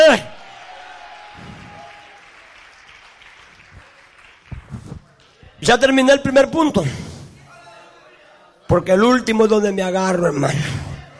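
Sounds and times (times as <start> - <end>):
audience applause: 0.0 - 5.5
speech: 5.6 - 7.1, 8.7 - 10.8.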